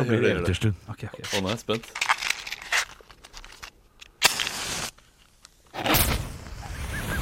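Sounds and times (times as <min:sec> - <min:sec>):
speech: 0:00.0 - 0:02.1
lighting a fire in a fireplace: 0:01.3 - 0:06.6.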